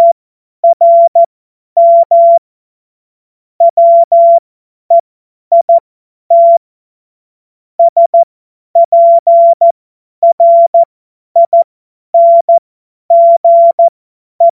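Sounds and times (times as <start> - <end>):
CW Morse code beeps: 0.0 - 2.4, 3.6 - 6.6, 7.8 - 8.2, 8.8 - 14.5.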